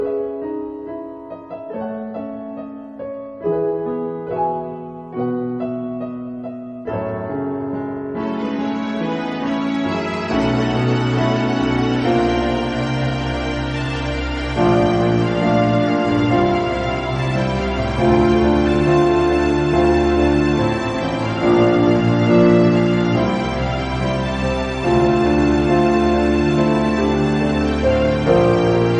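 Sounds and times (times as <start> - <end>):
instrumental music: 0.0 - 28.9.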